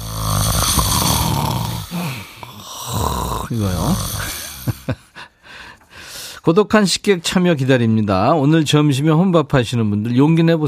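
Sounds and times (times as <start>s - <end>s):
person snoring: 0.0s - 5.2s
speech: 3.5s - 4.3s, 6.4s - 10.6s.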